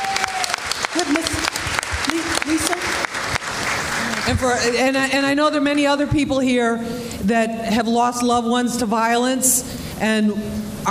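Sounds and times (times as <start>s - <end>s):
audience applause: 0.0s - 4.8s
speech: 1.0s - 1.4s, 4.2s - 10.8s.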